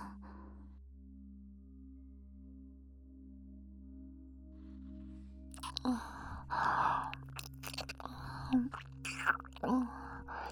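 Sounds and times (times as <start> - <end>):
ear licking: 5.6 - 10.4.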